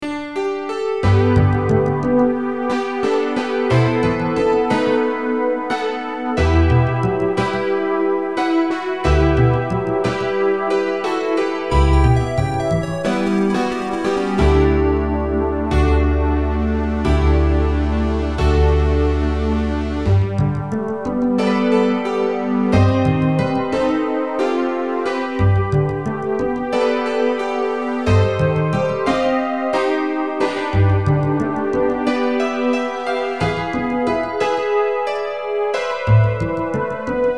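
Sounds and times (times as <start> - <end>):
piano: 0.0 - 37.3.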